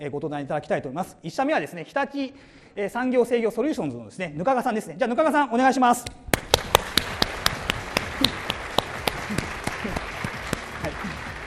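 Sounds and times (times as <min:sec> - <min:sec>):
speech: 0:00.0 - 0:06.5
audience applause: 0:06.4 - 0:11.4.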